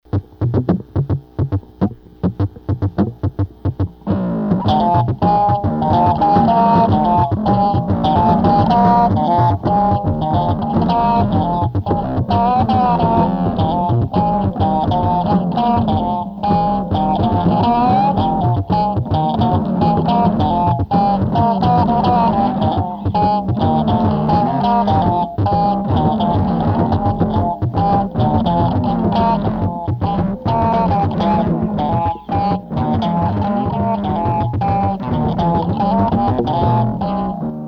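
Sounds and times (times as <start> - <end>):
fretless bass: 0.1 - 37.6.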